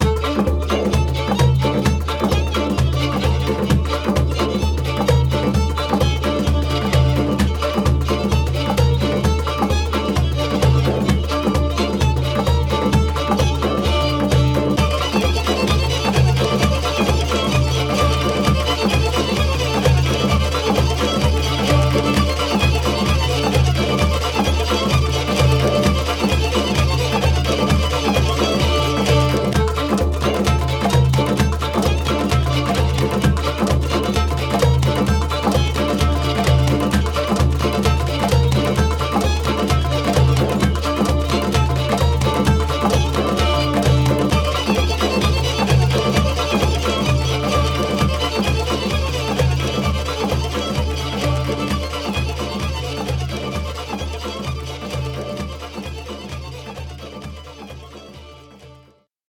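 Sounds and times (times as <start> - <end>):
violin playing: 0.0 - 59.1.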